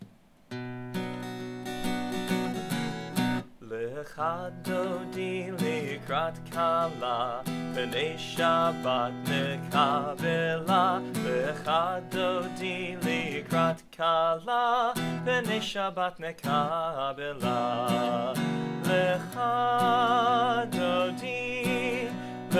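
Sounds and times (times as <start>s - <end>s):
traditional song refrain: 2.2s - 22.5s.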